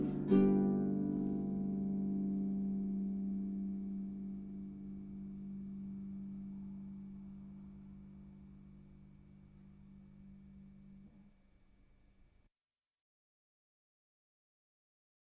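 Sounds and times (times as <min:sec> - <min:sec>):
harp playing a French pavane: 0:00.0 - 0:11.1.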